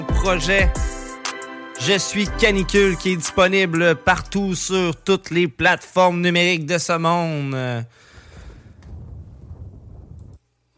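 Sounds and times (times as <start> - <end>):
speech: 0.2 - 0.9, 1.8 - 8.1
thunderclap: 8.3 - 10.4.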